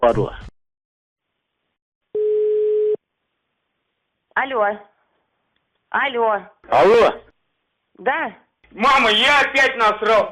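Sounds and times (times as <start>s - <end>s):
speech: 0.1s - 0.5s, 4.4s - 4.9s, 5.9s - 7.2s, 8.0s - 10.3s
telephone ringing tone after dialing: 2.2s - 3.0s.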